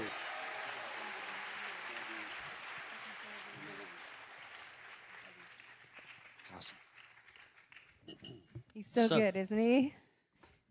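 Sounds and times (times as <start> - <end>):
audience applause: 0.0 - 8.0
speech: 6.5 - 6.8, 8.1 - 10.0.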